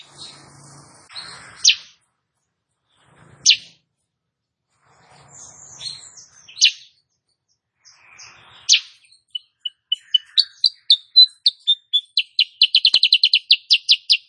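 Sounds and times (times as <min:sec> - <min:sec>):
female sooty-headed bulbul singing energetically: 0:00.0 - 0:02.0, 0:07.8 - 0:14.2.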